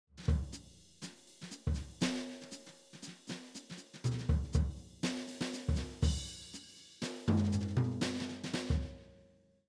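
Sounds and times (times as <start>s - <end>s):
jazz brushes on drums: 0.2s - 9.0s.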